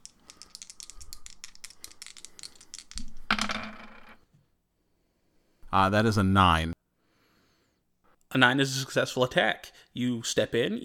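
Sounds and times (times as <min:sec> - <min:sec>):
dice rattling and rolling for an attack roll in a tabletop role-playing game: 0:00.0 - 0:04.2
speech: 0:05.7 - 0:06.8, 0:08.4 - 0:10.8.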